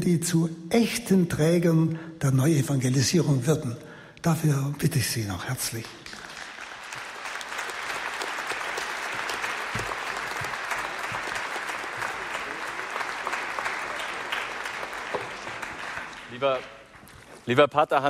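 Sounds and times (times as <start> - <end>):
speech: 0.0 - 6.1, 16.4 - 16.8, 17.5 - 18.0
audience applause: 5.8 - 17.5.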